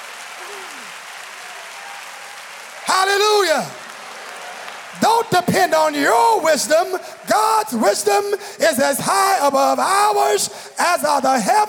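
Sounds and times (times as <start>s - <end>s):
faint cheer: 0.0s - 7.8s
audience clapping: 0.0s - 8.4s
speech: 5.0s - 11.6s.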